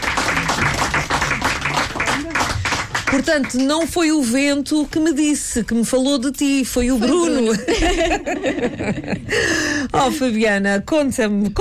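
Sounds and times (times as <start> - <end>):
audience applause for a guest singer on a Portuguese show: 0.0 - 3.7
speech: 3.1 - 11.5
laughter: 7.0 - 9.4.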